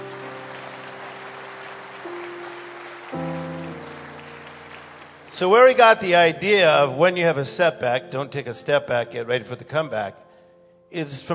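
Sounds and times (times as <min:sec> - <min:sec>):
audience clapping: 0:00.0 - 0:06.2
sustained organ chords: 0:00.0 - 0:11.3
speech: 0:05.4 - 0:10.2, 0:10.9 - 0:11.3.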